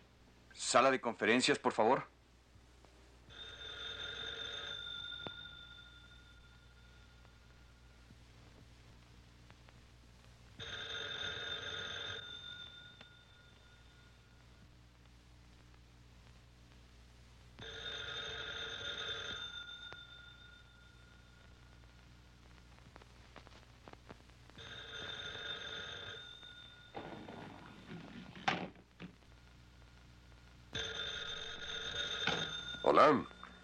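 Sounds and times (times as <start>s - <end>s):
low hum: 0.0s - 33.6s
speech: 0.7s - 2.2s
telephone ringing: 3.3s - 7.5s, 10.6s - 14.3s, 17.6s - 21.7s, 24.6s - 28.8s, 30.7s - 33.6s.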